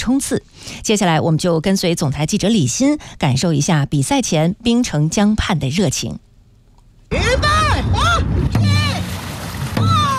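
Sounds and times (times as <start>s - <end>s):
speech: 0.0s - 6.3s
dragon boat crews shouting: 7.1s - 9.1s, 9.8s - 10.1s
water splashing on the Songhua River: 7.4s - 10.1s
heavy drum-like thumps: 8.0s - 10.1s.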